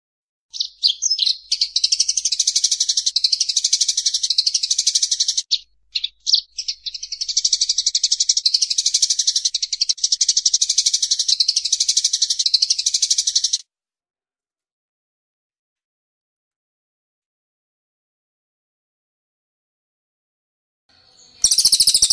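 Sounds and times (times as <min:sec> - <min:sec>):
bird song of high sharp chirps: 0:00.5 - 0:13.6, 0:20.9 - 0:22.1.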